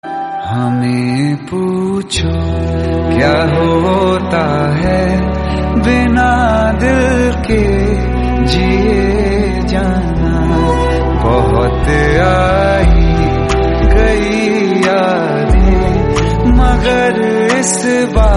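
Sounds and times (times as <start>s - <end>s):
sad trending TikTok music: 0.0s - 18.3s.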